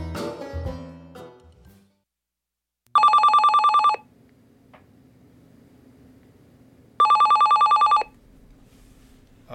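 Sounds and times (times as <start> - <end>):
telephone ringing unanswered: 2.9 - 4.1, 7.0 - 8.2.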